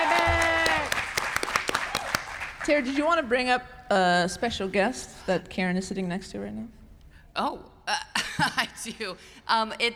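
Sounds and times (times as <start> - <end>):
audience applause: 0.0 - 2.6
speech: 2.7 - 6.8, 7.4 - 9.9.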